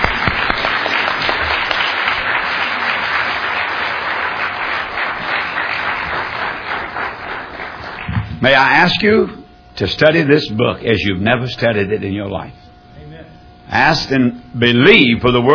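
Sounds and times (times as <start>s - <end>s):
crowd applauding: 0.0s - 8.4s
speech: 8.4s - 12.6s, 13.7s - 15.5s.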